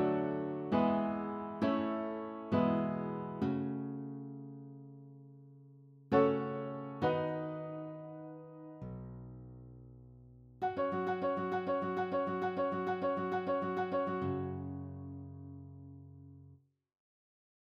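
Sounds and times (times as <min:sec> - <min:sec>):
instrumental music: 0:00.0 - 0:04.4, 0:06.1 - 0:09.6, 0:10.6 - 0:15.6.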